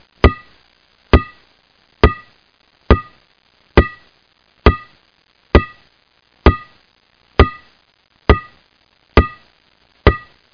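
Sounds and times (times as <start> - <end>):
ball bouncing: 0.2 - 0.5, 1.2 - 1.4, 2.0 - 2.3, 2.9 - 3.2, 3.8 - 4.0, 4.7 - 4.9, 5.6 - 5.8, 6.5 - 6.7, 7.4 - 7.7, 8.3 - 8.6, 9.2 - 9.4, 10.1 - 10.4.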